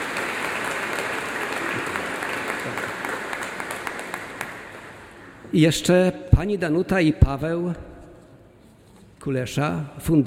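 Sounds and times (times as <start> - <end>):
audience applause: 0.0 - 5.4
speech: 5.5 - 7.9, 9.2 - 10.2.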